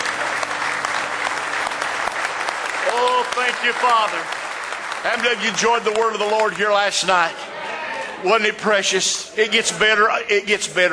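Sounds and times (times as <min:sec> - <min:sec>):
church congregation clapping hands in praise during a morning service: 0:00.0 - 0:07.5
speech: 0:03.0 - 0:04.4, 0:05.0 - 0:07.5, 0:08.2 - 0:10.9.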